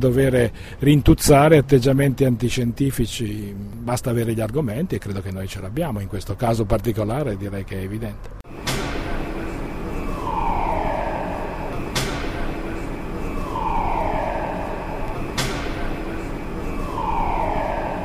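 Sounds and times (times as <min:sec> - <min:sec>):
speech: 0:00.0 - 0:08.7
construction site warning alarm at the Atlas site: 0:08.5 - 0:18.0.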